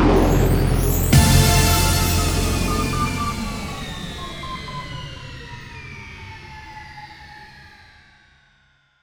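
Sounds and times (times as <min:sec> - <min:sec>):
space rave victory sound: 0:00.2 - 0:04.9.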